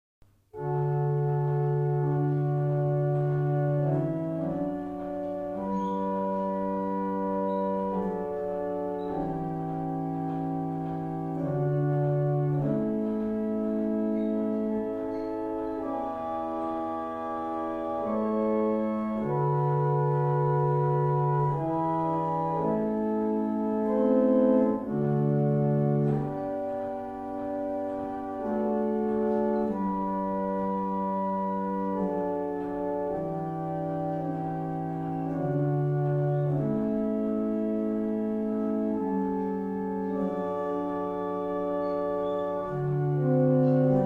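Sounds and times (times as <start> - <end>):
barrel organs: 0.5 - 44.0.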